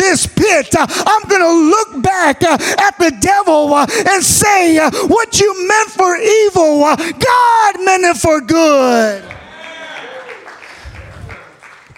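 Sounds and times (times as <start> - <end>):
speech: 0.2 - 9.4
light polite golf clap from a crowd: 9.2 - 11.9.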